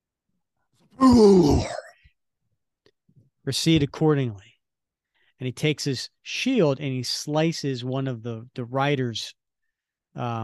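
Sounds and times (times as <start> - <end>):
voice imitating an explosion: 1.0 - 1.9
speech: 3.4 - 4.5, 5.4 - 9.4, 10.1 - 10.4.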